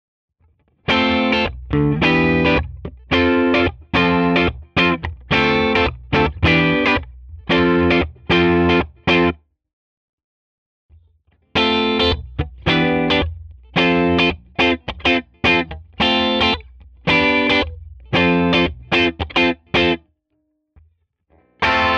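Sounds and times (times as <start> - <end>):
Schecter Banshee Mach 7 clean guitar groove: 0.8 - 9.4, 11.6 - 20.0, 21.5 - 21.9.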